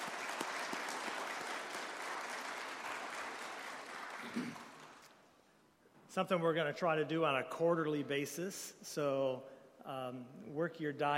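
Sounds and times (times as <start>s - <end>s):
audience round of applause: 0.0s - 5.1s
speech: 6.1s - 11.1s.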